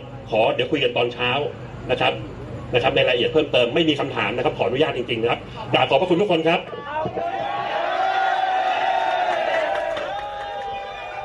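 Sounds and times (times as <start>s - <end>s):
speech: 0.3s - 7.4s
crowd cheering in a room: 6.7s - 11.2s.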